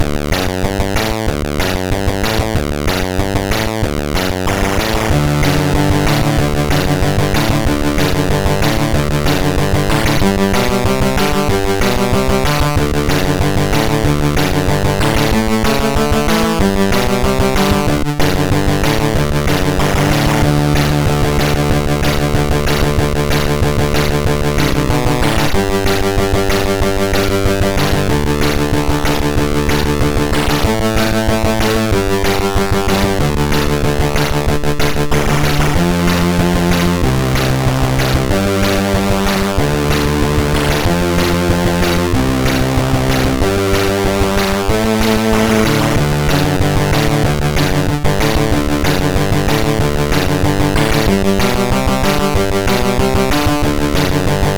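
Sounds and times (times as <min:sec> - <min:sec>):
MOS6581R2 SID chip synth: 0:00.0 - 0:54.5.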